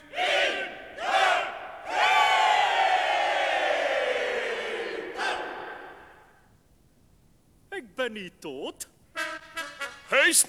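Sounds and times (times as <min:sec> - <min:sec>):
crowd cheering: 0:00.2 - 0:06.4
speech: 0:08.1 - 0:09.0, 0:10.1 - 0:10.4.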